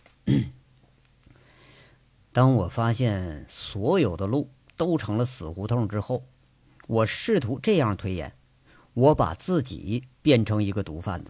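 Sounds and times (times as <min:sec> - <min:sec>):
throat clearing: 0:00.2 - 0:00.6
speech: 0:02.4 - 0:06.3, 0:06.9 - 0:08.4, 0:09.0 - 0:11.2.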